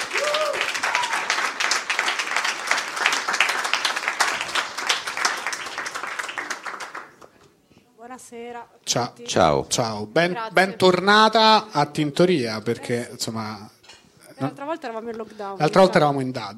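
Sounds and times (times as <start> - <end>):
audience applause: 0.0 - 7.4
speech: 8.3 - 13.8, 14.4 - 16.5.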